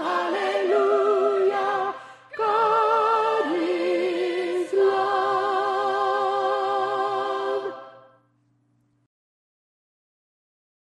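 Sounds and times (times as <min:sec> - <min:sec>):
alto singing in an oratorio: 0:00.0 - 0:08.1.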